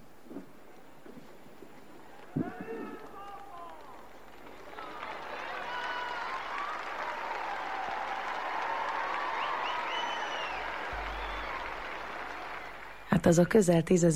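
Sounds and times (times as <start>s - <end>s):
large crowd applauding: 2.1s - 13.3s
speech: 13.2s - 14.1s.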